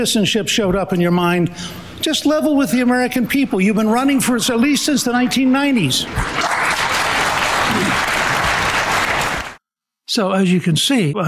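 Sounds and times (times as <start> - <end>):
speech: 0.0 - 6.5, 10.1 - 11.2
audience applause at a Republican debate: 5.9 - 9.6.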